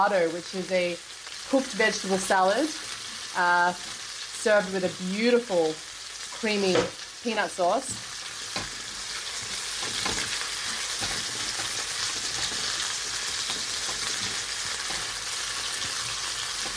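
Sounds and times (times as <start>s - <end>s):
speech: 0.0s - 8.1s
chicken sizzling in hot oil: 0.0s - 16.7s
utensil scraping and stirring: 7.9s - 16.7s.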